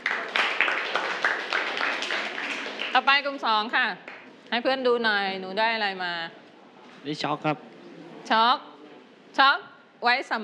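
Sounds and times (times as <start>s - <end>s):
classroom of students clapping: 0.0s - 3.4s, 4.0s - 4.3s
speech: 3.0s - 6.4s, 7.0s - 7.7s, 8.3s - 8.7s, 9.4s - 10.4s.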